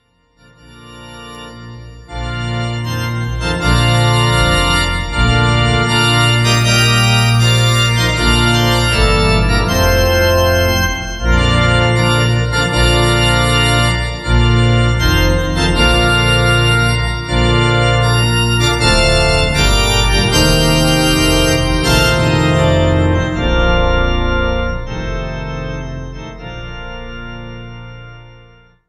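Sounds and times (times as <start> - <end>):
organ playing: 0.0 - 28.8.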